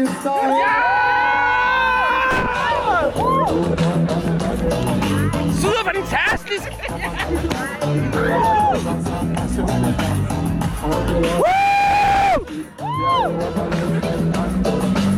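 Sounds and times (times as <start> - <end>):
speech: 0.0 - 0.8
concert crowd cheering and shouting: 0.0 - 14.4
dense babble: 0.0 - 15.1
sustained high yell: 0.4 - 3.5, 11.4 - 13.2
laughter: 5.8 - 9.1.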